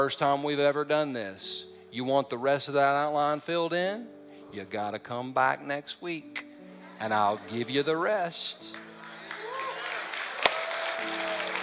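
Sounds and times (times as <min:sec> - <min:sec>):
speech: 0:00.0 - 0:06.4, 0:07.0 - 0:08.9
audience clapping: 0:08.7 - 0:11.6.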